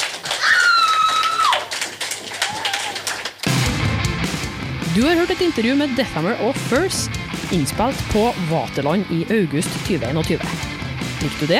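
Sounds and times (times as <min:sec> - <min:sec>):
audience applause for the bands: 0:00.0 - 0:03.8
speech: 0:05.0 - 0:11.5.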